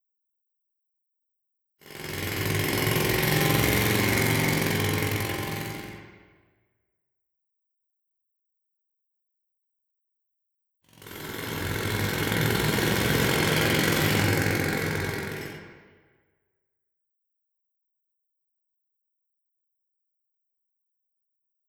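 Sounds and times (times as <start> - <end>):
jackhammer in New York City: 1.8 - 6.4, 10.9 - 16.1.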